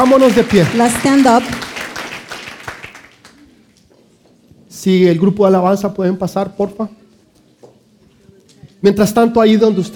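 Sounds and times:
speech: 0.0s - 1.7s, 4.8s - 7.0s, 8.8s - 9.9s
audience applause: 0.0s - 3.4s.

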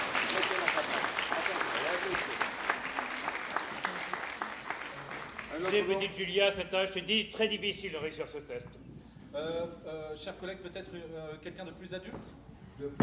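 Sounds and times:
audience applause: 0.0s - 6.2s
speech: 5.6s - 13.0s.

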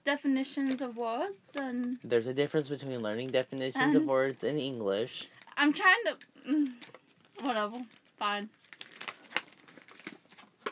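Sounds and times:
speech: 0.1s - 8.6s
paper crinkling: 6.7s - 10.6s.

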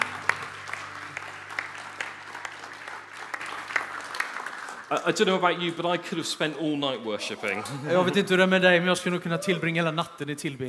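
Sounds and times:
audience applause: 0.0s - 7.4s
speech: 4.9s - 10.6s.

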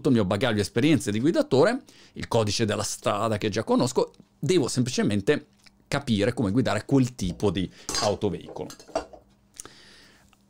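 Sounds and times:
speech: 0.0s - 9.0s
drinking glass falling over: 7.9s - 9.2s.

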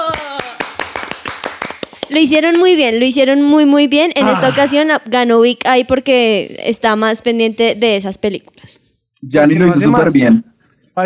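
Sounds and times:
small group clapping: 0.0s - 3.0s
speech: 2.1s - 11.0s.

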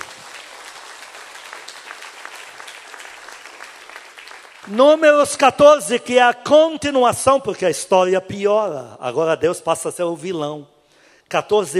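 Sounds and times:
audience applause: 0.0s - 5.0s
speech: 4.7s - 10.7s, 11.3s - 11.7s.

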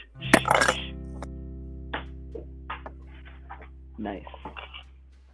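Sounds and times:
glass shattering: 0.3s - 0.9s
glass pieces tinkling as they settle: 0.4s - 0.8s
speech: 4.0s - 4.6s.

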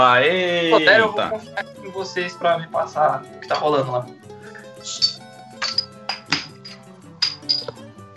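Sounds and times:
speech: 0.0s - 5.1s
APA 82 beer bottle and cap clinking while opened: 3.4s - 3.7s, 4.8s - 7.9s.

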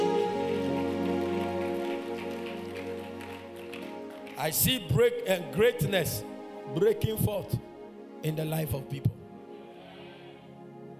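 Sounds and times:
audience clapping: 0.0s - 4.9s
speech: 4.4s - 9.2s.

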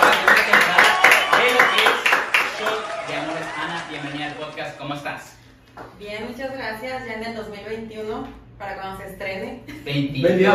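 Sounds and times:
applause for a guest: 0.0s - 5.3s
speech: 6.1s - 10.5s.

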